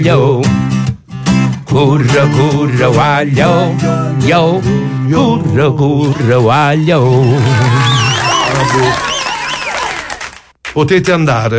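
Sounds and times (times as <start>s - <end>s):
speech: 0.0s - 0.5s, 1.7s - 8.0s, 8.6s - 9.1s, 10.8s - 11.5s
audience applause and cheering: 7.0s - 10.5s.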